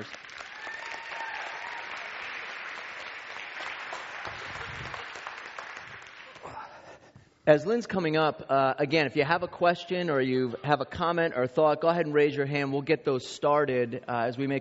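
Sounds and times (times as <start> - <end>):
speech: 0.0 - 0.2, 7.5 - 14.6
church congregation clapping for its senior pastor: 0.0 - 6.8.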